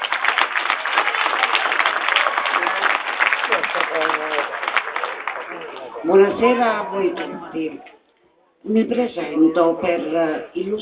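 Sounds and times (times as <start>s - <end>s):
crowd applause: 0.0s - 8.0s
speech: 3.5s - 4.7s, 5.5s - 8.0s, 8.6s - 10.8s.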